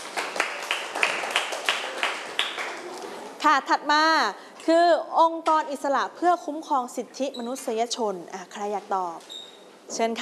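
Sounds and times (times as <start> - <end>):
audience clapping: 0.0 - 3.0
speech: 3.4 - 9.3, 9.9 - 10.2.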